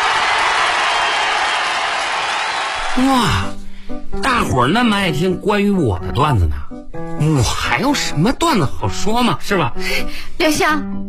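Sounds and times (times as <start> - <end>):
audience applause at a crosstalk comedy show: 0.0 - 3.0
speech: 3.0 - 3.6, 4.2 - 11.0.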